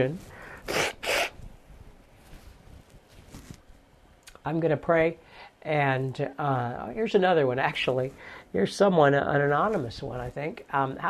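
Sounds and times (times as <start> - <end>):
speech: 0.0 - 0.8, 4.4 - 11.0
person blowing their nose: 0.4 - 1.5.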